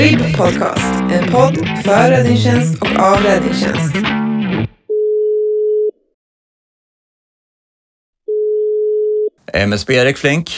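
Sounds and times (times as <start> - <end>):
speech: 0.0 - 4.7, 9.5 - 10.5
telephone ringback tone while calling: 4.9 - 5.9, 8.3 - 9.3.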